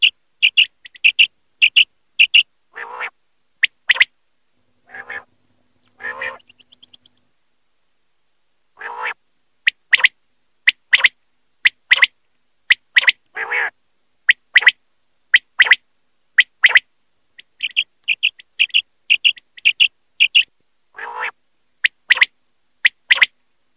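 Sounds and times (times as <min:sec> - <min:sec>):
common quail calling: 0:00.0 - 0:04.1, 0:04.8 - 0:05.3, 0:05.9 - 0:07.2, 0:08.8 - 0:12.1, 0:12.7 - 0:14.8, 0:15.4 - 0:15.8, 0:16.4 - 0:16.8, 0:17.4 - 0:23.3.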